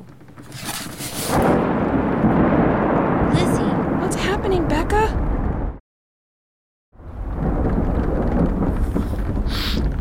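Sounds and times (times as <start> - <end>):
deep rumbling roar of thunder: 0.0 - 5.8, 7.0 - 9.9
heavy rain: 1.3 - 5.8, 7.0 - 9.9.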